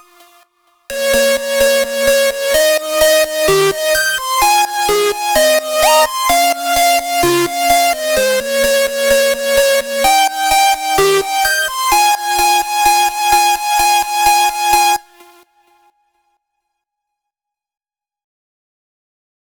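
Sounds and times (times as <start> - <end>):
counter melodies: 0.9 - 15.0.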